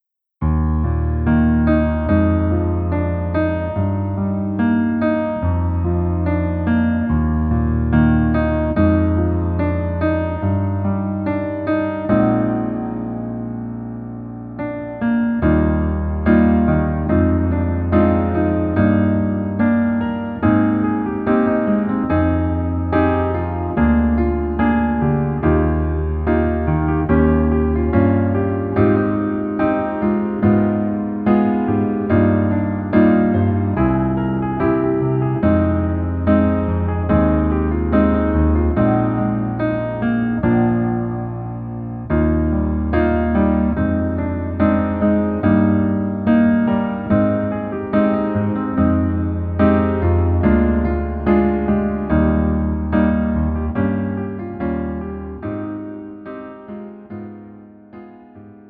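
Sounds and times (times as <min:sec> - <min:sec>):
piano melody backing track: 0:00.0 - 0:58.6.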